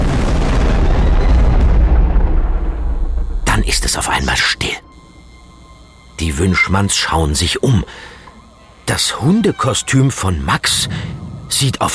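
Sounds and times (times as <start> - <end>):
thunderclap from a lightning strike: 0.0 - 3.8
speech: 3.9 - 4.8, 6.2 - 8.1, 8.9 - 11.9.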